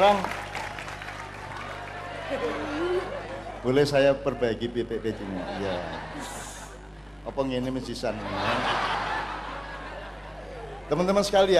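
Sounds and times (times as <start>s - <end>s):
speech: 0.0s - 0.4s, 2.3s - 2.8s, 3.6s - 6.6s, 7.2s - 8.9s, 10.9s - 11.5s
audience clapping: 0.0s - 3.0s
laughter: 2.0s - 7.0s, 8.0s - 11.5s.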